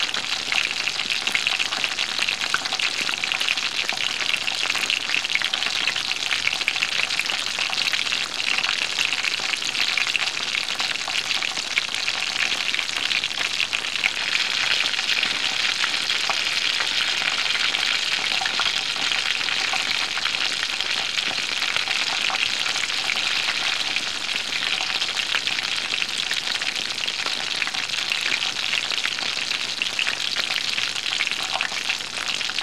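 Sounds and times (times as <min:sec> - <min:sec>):
cooking pan sizzling: 0:00.0 - 0:32.6.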